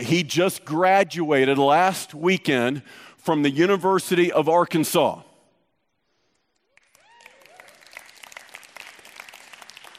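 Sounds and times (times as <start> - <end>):
speech: 0.0 - 5.3
audience applause: 6.7 - 9.9.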